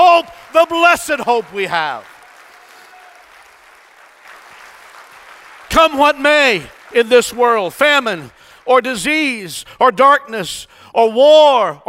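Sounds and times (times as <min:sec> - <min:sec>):
audience clapping in praise: 0:00.0 - 0:09.5
speech: 0:00.2 - 0:02.1, 0:05.7 - 0:11.8.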